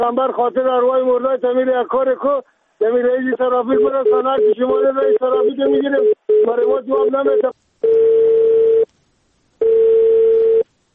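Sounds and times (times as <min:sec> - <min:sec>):
speech: 0:00.0 - 0:08.0
telephone tone after a line is cut off: 0:03.7 - 0:08.9, 0:09.6 - 0:10.6.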